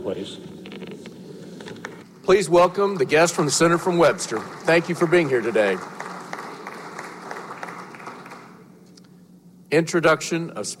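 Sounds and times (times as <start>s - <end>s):
speech: 0.0s - 0.8s, 2.3s - 6.0s, 9.7s - 10.7s
applause from members of a state senate chamber: 2.2s - 8.7s.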